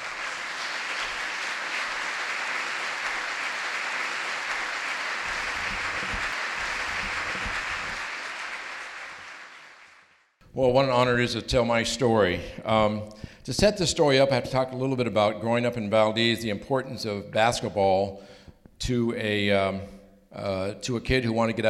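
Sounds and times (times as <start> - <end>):
audience applause welcoming Governor Bill Walker: 0.0 - 10.2
speech: 10.6 - 21.6.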